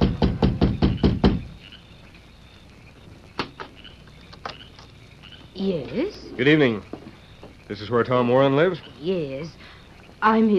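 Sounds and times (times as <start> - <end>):
loud knocks on a wooden door: 0.0 - 1.6
speech: 5.6 - 7.0, 7.7 - 10.5.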